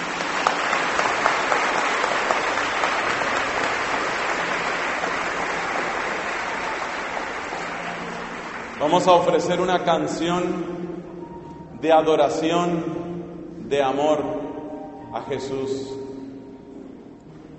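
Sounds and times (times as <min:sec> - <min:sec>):
audience applause: 0:00.0 - 0:09.5
speech: 0:08.8 - 0:10.8, 0:11.8 - 0:13.0, 0:13.7 - 0:14.4, 0:15.1 - 0:16.0.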